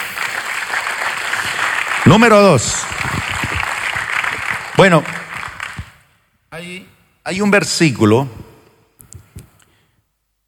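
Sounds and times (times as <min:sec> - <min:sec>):
audience applause: 0:00.0 - 0:06.0
speech: 0:02.0 - 0:03.3, 0:04.8 - 0:05.2, 0:06.6 - 0:08.4.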